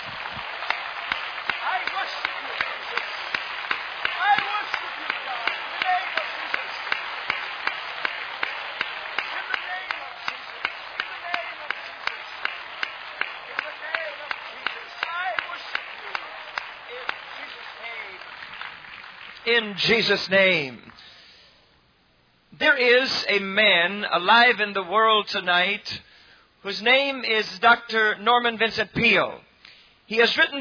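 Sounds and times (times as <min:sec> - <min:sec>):
audience applauding and clapping: 0:00.0 - 0:20.7
speech: 0:19.5 - 0:20.9, 0:22.7 - 0:29.4, 0:30.1 - 0:30.5.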